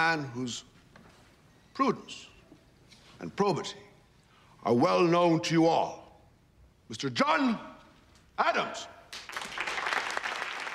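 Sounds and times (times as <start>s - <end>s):
speech: 0.0s - 0.8s, 1.8s - 2.3s, 3.2s - 3.9s, 4.6s - 6.0s, 6.9s - 7.7s, 8.4s - 8.9s
scattered quiet applause from a small group: 9.1s - 10.7s.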